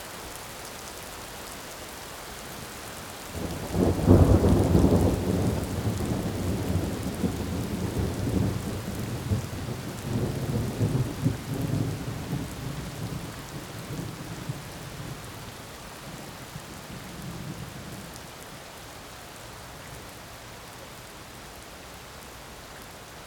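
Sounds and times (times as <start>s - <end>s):
evening rain: 0.0s - 23.2s
evening thunder: 3.8s - 13.2s.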